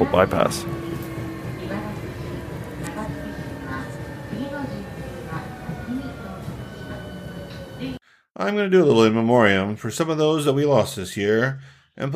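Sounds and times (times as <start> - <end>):
speech: 0.0 - 0.8, 8.4 - 12.1
train riding the rails in Osaka: 0.0 - 8.0.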